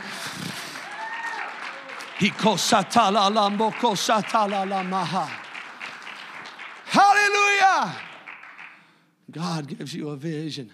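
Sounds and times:
audience clapping hands: 0.0s - 9.0s
speech: 2.2s - 5.4s, 7.2s - 8.1s, 9.3s - 10.7s.

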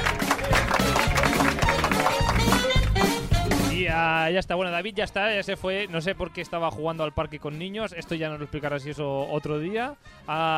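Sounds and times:
canned applause sound effect: 0.0s - 3.5s
speech: 4.3s - 10.5s.

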